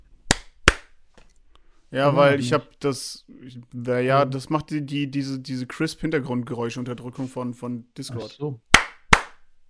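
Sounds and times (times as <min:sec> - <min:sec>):
hand clap: 0:00.3 - 0:01.0, 0:08.7 - 0:09.4
speech: 0:01.9 - 0:08.7.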